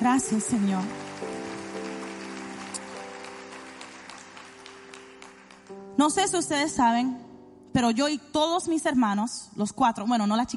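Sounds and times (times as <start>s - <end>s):
speech: 0.0s - 1.1s, 6.0s - 10.5s
audience applause: 0.0s - 5.8s.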